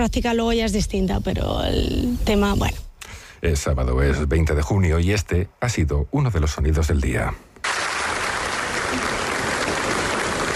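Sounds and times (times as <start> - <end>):
speech: 0.0 - 2.8, 3.4 - 7.5
audience applause in Ponferrada: 7.6 - 10.5.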